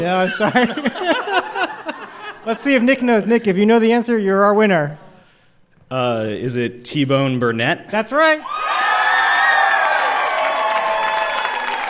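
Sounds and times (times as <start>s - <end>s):
speech: 0.0s - 1.4s, 2.4s - 5.0s, 5.9s - 8.8s
laughter: 0.0s - 3.0s
audience cheering with whoops and shouts: 8.4s - 11.8s.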